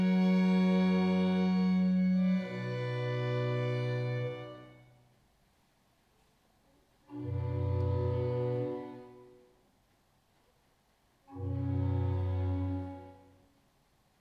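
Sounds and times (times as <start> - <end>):
adagio concerto for strings in D major: 0.0 - 5.0, 7.1 - 9.5, 11.3 - 13.4.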